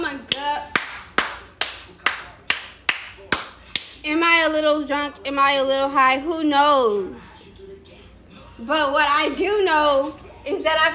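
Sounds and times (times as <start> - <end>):
hand clapping: 0.3 - 4.0
speech: 4.5 - 7.3, 8.6 - 10.9.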